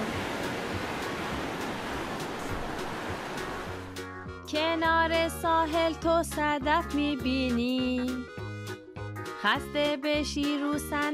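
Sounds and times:
sea waves washing: 0:00.0 - 0:04.1
speech: 0:04.5 - 0:08.4, 0:09.4 - 0:11.1.

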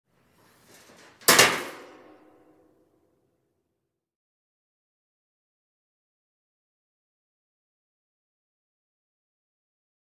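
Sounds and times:
metal shelf: 0:00.3 - 0:02.6.

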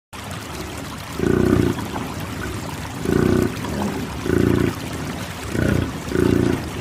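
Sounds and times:
domestic water buffalo: 0:01.1 - 0:02.0, 0:03.0 - 0:06.8.

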